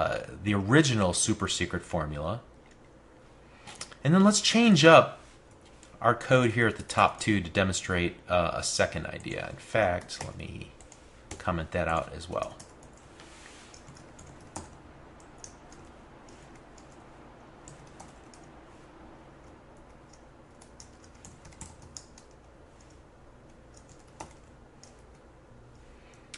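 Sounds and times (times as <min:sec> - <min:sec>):
speech: 0:00.0 - 0:02.5, 0:04.0 - 0:05.2, 0:06.0 - 0:10.8, 0:11.4 - 0:12.6
typing on a computer keyboard: 0:13.7 - 0:17.0, 0:17.6 - 0:18.5, 0:19.4 - 0:25.3.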